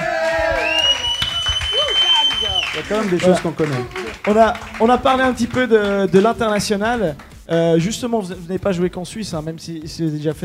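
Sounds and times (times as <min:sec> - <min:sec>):
excited crowd voices: 0:00.0 - 0:04.5
audience applause: 0:00.0 - 0:07.0
crowd whoops and whistles: 0:00.4 - 0:02.8
speech: 0:02.8 - 0:10.4.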